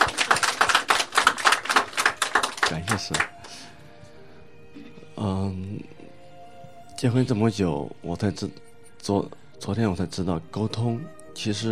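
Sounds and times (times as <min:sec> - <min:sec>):
audience clapping: 0:00.0 - 0:03.6
speech: 0:02.7 - 0:03.7, 0:07.0 - 0:11.7.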